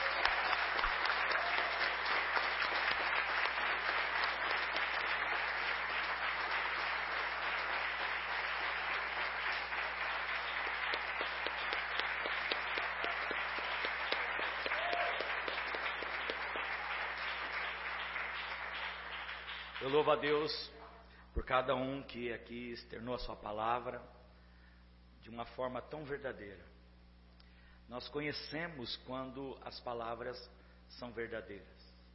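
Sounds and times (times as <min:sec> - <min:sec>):
audience applause: 0:00.0 - 0:20.1
speech: 0:19.9 - 0:20.8, 0:21.5 - 0:24.2, 0:25.3 - 0:26.7, 0:27.9 - 0:31.8.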